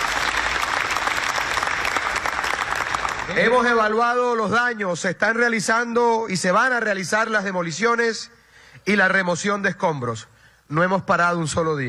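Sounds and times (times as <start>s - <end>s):
audience applause: 0.0s - 3.9s
speech: 3.3s - 11.8s.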